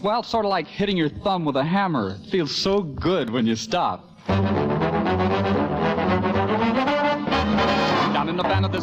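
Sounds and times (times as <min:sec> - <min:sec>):
speech: 0:00.0 - 0:04.6, 0:08.4 - 0:08.8
tuba playing oompa bass notes: 0:04.3 - 0:08.8.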